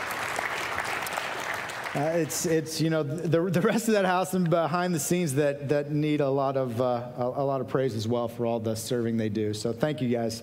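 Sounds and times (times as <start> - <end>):
audience applause: 0.0 - 2.6
speech: 2.0 - 10.4.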